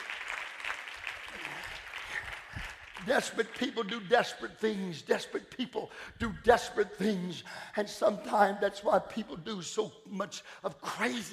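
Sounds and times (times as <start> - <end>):
audience clapping hands: 0.0 - 4.8
speech: 3.0 - 11.3.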